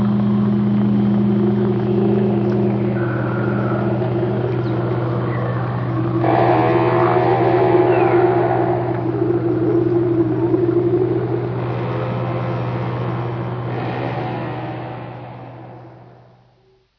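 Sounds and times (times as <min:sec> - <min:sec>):
low electrical-sounding hum: 0:00.0 - 0:16.9
crabeater seal moans: 0:01.1 - 0:12.0.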